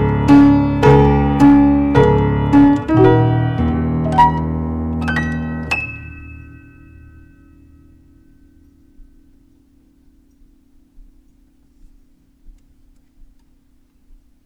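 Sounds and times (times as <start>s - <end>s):
piano concerto soundcheck: 0.0s - 9.4s.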